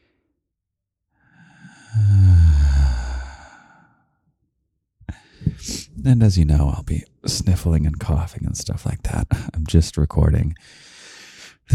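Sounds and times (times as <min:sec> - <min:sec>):
deep breath: 0:01.2 - 0:04.2, 0:05.1 - 0:05.9, 0:10.6 - 0:11.7
speech: 0:06.0 - 0:10.9.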